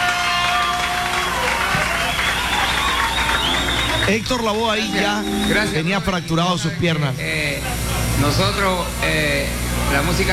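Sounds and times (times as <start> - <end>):
applause: 0.0 - 4.9
speech: 4.1 - 10.3.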